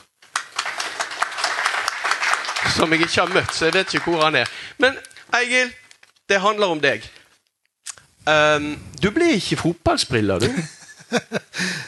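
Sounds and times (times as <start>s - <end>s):
small group applauding: 0.0s - 4.8s
speech: 2.6s - 7.2s, 8.2s - 11.8s
laughter: 10.4s - 11.8s.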